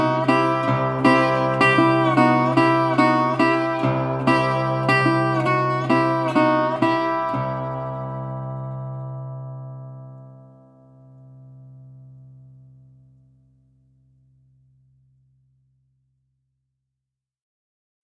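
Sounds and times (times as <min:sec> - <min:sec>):
ragtime music: 0:00.0 - 0:08.0.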